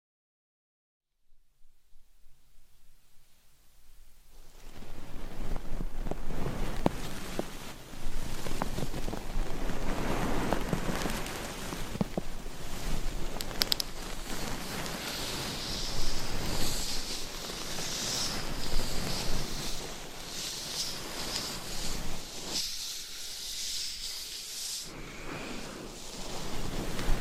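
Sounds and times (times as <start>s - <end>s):
binaural microphone scratching and brushing: 4.4s - 27.2s.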